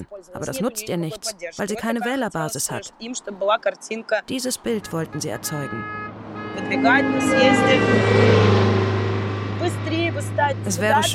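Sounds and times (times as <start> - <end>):
speech: 0.0 - 8.9, 9.6 - 11.1
loud car horns honking in traffic: 4.3 - 11.1.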